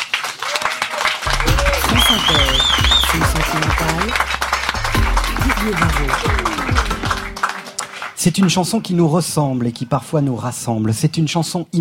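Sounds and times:
audience applause: 0:00.0 - 0:08.8
speech: 0:08.2 - 0:11.7.

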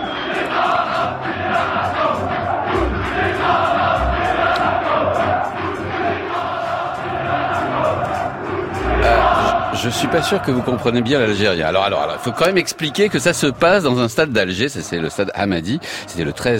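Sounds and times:
football supporters chanting in Hamadi stadium in Algiers: 0:00.0 - 0:13.5
speech: 0:09.9 - 0:16.5.

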